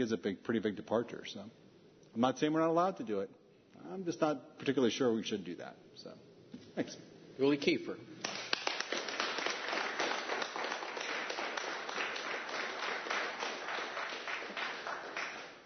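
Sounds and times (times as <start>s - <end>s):
speech: 0.0s - 8.3s
audience applause: 8.2s - 15.6s.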